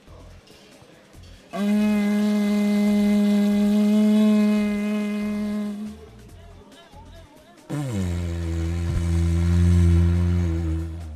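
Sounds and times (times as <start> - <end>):
Australian didgeridoo drone: 1.6 - 6.4, 7.7 - 11.1.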